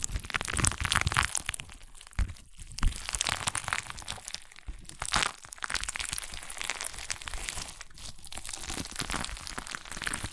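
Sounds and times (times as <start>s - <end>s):
crunchy slime squeezed and pressed crackling: 0.0s - 10.3s.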